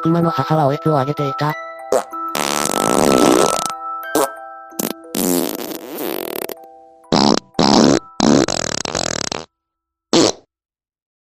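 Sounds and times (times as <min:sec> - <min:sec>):
speech: 0:00.0 - 0:02.1, 0:03.0 - 0:03.5
voice imitating a fart: 0:01.9 - 0:09.5, 0:10.2 - 0:10.5.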